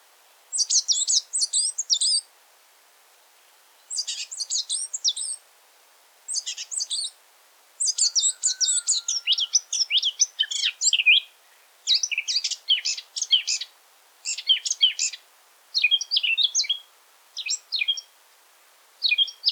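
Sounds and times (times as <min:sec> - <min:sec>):
Eurasian blackcap song: 0:00.5 - 0:02.3, 0:03.8 - 0:05.4, 0:06.3 - 0:07.2, 0:07.8 - 0:18.2, 0:19.0 - 0:19.5.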